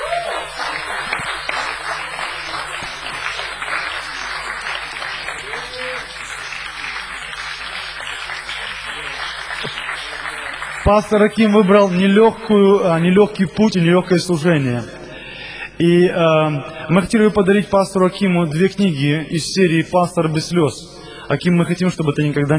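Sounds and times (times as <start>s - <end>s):
voices in the crowd: 0.0s - 10.8s
church congregation clapping for their pastor: 0.0s - 12.2s
speech: 10.9s - 15.0s, 15.8s - 22.5s.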